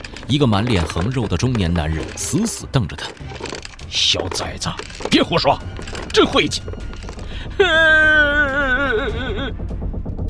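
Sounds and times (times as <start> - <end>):
speech: 0.3 - 6.9, 7.5 - 9.7
child wailing in a crowd aboard a large ship: 7.6 - 9.5.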